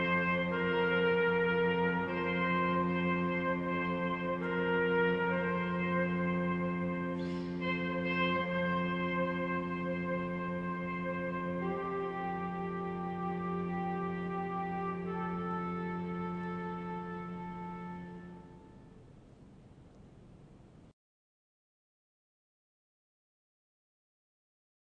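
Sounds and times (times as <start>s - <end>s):
agitated cello playing: 0.0s - 18.8s.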